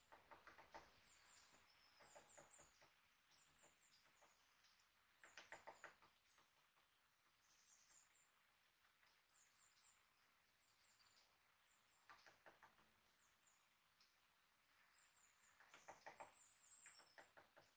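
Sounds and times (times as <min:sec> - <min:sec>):
great spotted woodpecker hammering while searching for food: 0:00.0 - 0:10.1, 0:11.0 - 0:17.7.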